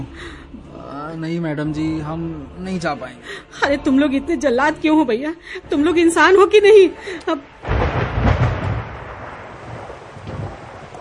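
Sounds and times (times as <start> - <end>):
speech: 1.1 - 7.5
thunder on a dark monsoon night: 5.7 - 10.9
heavy rain on a dark monsoon night: 6.1 - 10.9.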